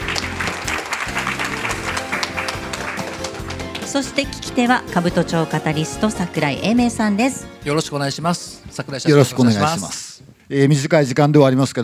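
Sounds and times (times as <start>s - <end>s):
audience applause: 0.0s - 4.6s
speech: 3.9s - 11.8s.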